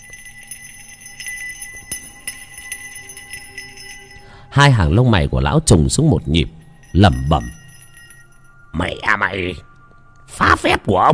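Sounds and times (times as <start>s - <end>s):
small hand bell shaken by an old man performing a spell: 0.0s - 4.6s, 6.4s - 8.7s
speech: 4.6s - 7.6s, 8.8s - 9.7s, 10.4s - 11.1s.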